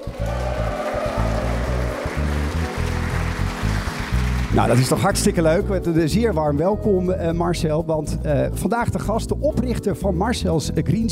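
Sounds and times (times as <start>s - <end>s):
crowd cheering and applauding: 0.0s - 5.4s
speech: 4.6s - 11.1s.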